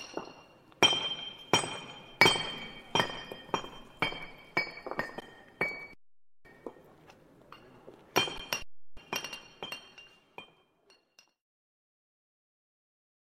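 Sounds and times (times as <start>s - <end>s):
workers mending cobbled street: 0.0s - 11.4s.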